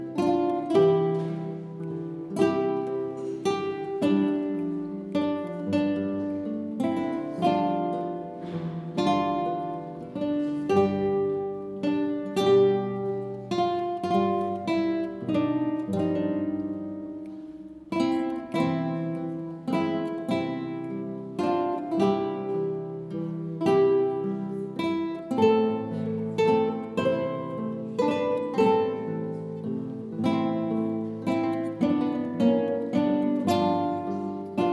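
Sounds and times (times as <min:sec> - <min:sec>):
guitars: 0:00.0 - 0:34.7.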